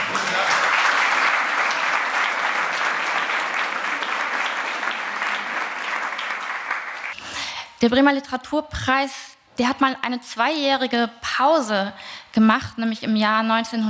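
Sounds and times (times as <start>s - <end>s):
audience applause: 0.0s - 7.2s
speech: 7.8s - 13.8s.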